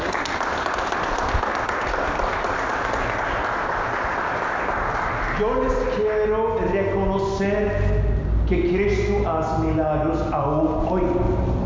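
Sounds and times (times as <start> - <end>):
applause: 0.0 - 5.7
speech: 5.4 - 11.5.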